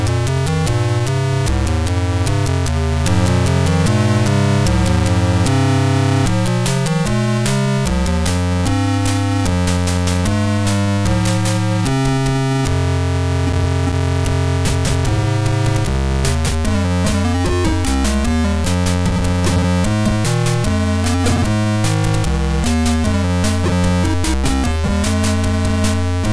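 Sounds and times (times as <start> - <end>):
sound chip electro music: 0.0 - 26.3.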